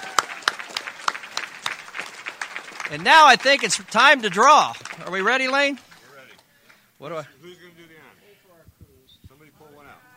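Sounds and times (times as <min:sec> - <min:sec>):
audience applause at a convention: 0:00.0 - 0:06.4
speech: 0:02.9 - 0:05.9, 0:07.0 - 0:07.7.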